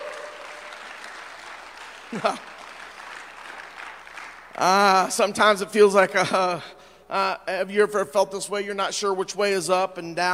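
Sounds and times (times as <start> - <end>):
audience hand clapping of praise: 0.0 - 5.4
speech: 2.1 - 2.5, 4.6 - 10.3.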